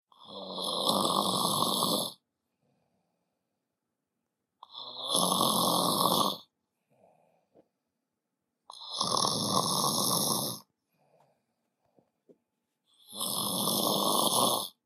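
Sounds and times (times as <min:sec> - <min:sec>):
grandpa snoring: 0:00.1 - 0:02.2, 0:04.6 - 0:06.5, 0:08.7 - 0:10.7, 0:13.0 - 0:14.8.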